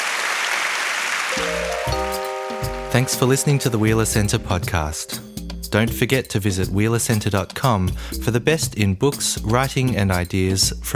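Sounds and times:
audience applause: 0:00.0 - 0:02.6
speech: 0:03.0 - 0:10.9.

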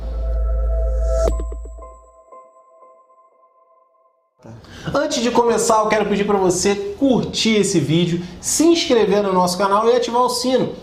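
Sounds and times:
deep droning bass: 0:00.0 - 0:02.2
podcast intro jingle: 0:00.0 - 0:04.4
speech: 0:04.4 - 0:10.8.

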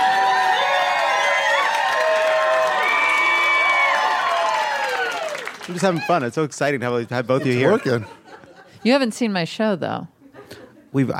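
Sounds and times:
crowd cheering: 0:00.0 - 0:06.5
speech: 0:05.7 - 0:08.2, 0:08.8 - 0:11.1
laughter: 0:07.1 - 0:08.9.

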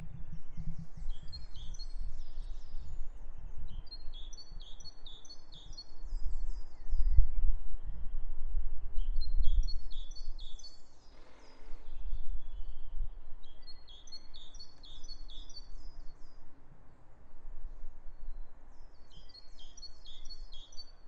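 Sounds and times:
birdsong: 0:00.0 - 0:08.3, 0:08.9 - 0:16.6, 0:17.7 - 0:21.0.

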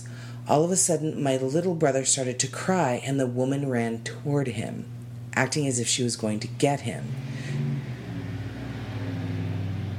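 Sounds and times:
speech: 0:00.5 - 0:07.6
truck engine driving: 0:06.8 - 0:09.9.

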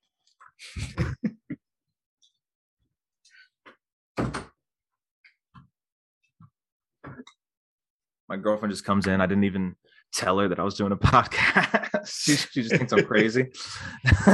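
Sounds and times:
laughter: 0:00.8 - 0:01.6, 0:11.3 - 0:14.3
door closing: 0:04.2 - 0:04.5
speech: 0:08.3 - 0:14.3.

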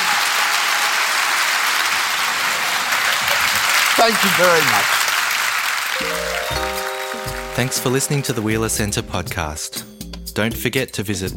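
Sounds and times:
audience applause: 0:00.0 - 0:08.5
speech: 0:04.0 - 0:05.0, 0:07.6 - 0:11.3.

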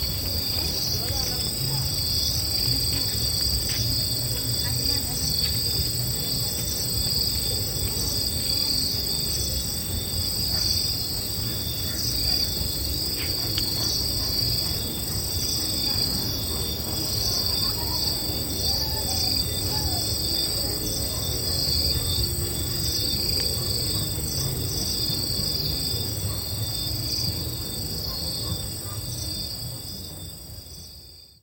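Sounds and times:
nocturnal cricket chorus in Ghana: 0:00.0 - 0:31.4.

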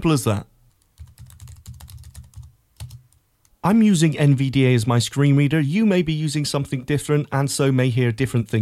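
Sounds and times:
speech: 0:00.0 - 0:00.5, 0:03.6 - 0:08.6
typing a search on a Windows computer keyboard: 0:00.7 - 0:03.2.

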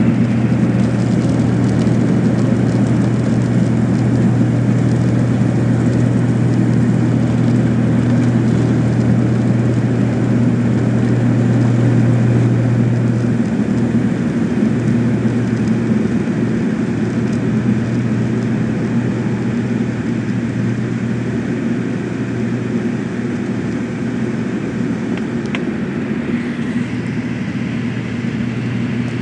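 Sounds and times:
aircraft taking off: 0:00.0 - 0:29.2.

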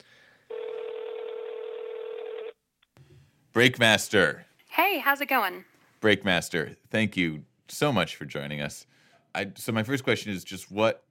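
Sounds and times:
telephone ringing: 0:00.5 - 0:02.6
speech: 0:03.6 - 0:11.0.

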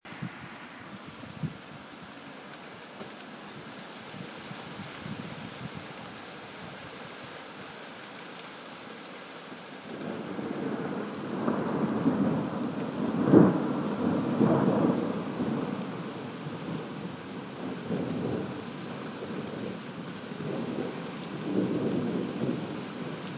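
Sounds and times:
lashing rain: 0:00.0 - 0:23.3
thunder: 0:09.9 - 0:17.0, 0:20.4 - 0:23.3.

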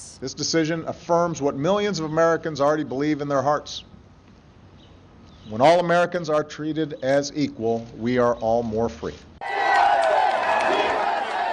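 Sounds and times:
speech: 0:00.2 - 0:03.9, 0:05.5 - 0:09.3
crowd cheering on the Marble Plaza outside the Supreme Court: 0:09.4 - 0:11.5.

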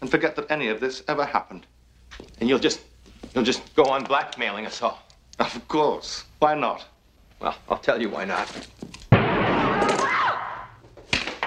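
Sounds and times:
speech: 0:00.1 - 0:09.0
gunshot: 0:09.1 - 0:10.8.

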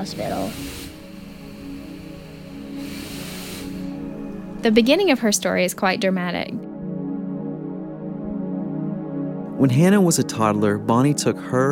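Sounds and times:
speech: 0:00.0 - 0:01.0, 0:04.6 - 0:06.7, 0:09.6 - 0:11.7
ventilator breathing machine hiss: 0:00.0 - 0:05.9.

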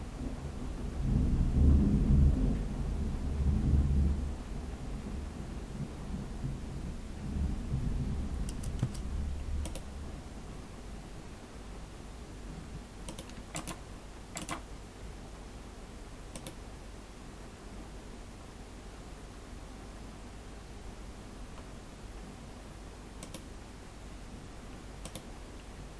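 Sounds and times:
rain: 0:00.0 - 0:13.0
thunder: 0:00.2 - 0:08.5
typing: 0:08.5 - 0:09.0, 0:09.6 - 0:09.9, 0:13.1 - 0:13.8, 0:14.4 - 0:14.6, 0:16.3 - 0:16.6, 0:23.2 - 0:23.5, 0:25.0 - 0:25.3.

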